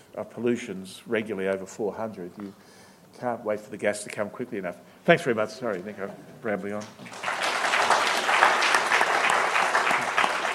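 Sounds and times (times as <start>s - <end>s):
speech: 0.2s - 7.3s
audience applause after a talk on China: 7.0s - 10.5s.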